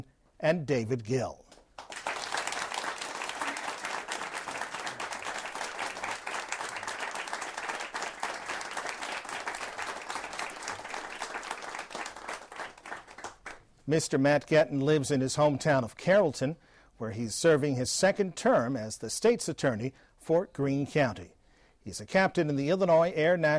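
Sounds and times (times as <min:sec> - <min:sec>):
speech: 0:00.0 - 0:01.5, 0:13.9 - 0:23.5
audience round of applause: 0:01.8 - 0:13.6.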